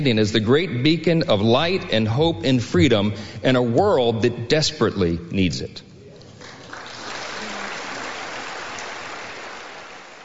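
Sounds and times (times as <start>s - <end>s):
speech: 0.0s - 5.9s
weak audience applause: 6.2s - 10.2s.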